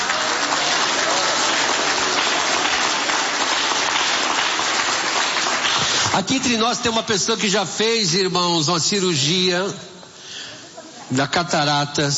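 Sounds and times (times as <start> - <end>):
audience applause: 0.0 - 6.3
speech: 6.2 - 9.9, 11.1 - 12.1.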